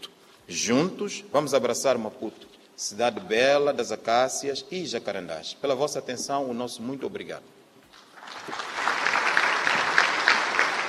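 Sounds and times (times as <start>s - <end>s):
speech: 0.5s - 7.6s
audience applause: 8.0s - 10.8s.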